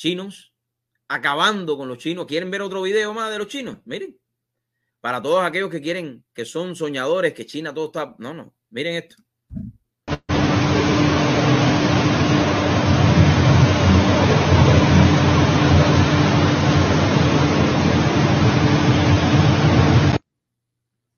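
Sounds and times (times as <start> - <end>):
speech: 0.0 - 0.5, 1.1 - 4.2, 5.0 - 9.8
drones flying over a city: 10.3 - 20.2.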